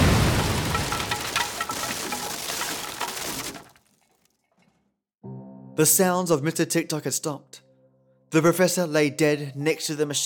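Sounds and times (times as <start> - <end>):
explosion: 0.0 - 3.7
collapsing debris: 0.0 - 4.4
speech: 5.8 - 7.6, 8.3 - 10.2.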